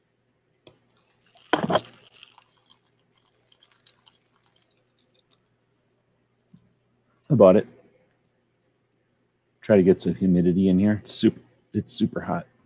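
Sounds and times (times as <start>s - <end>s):
small tabletop water fountain dripping and trickling: 0.7s - 7.2s
speech: 1.7s - 2.0s, 7.3s - 7.7s, 9.7s - 12.5s.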